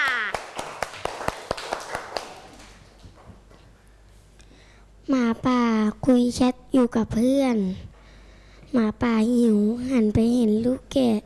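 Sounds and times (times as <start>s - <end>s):
children clapping for a classmate: 0.0s - 3.2s
speech: 6.1s - 7.9s, 8.7s - 11.2s.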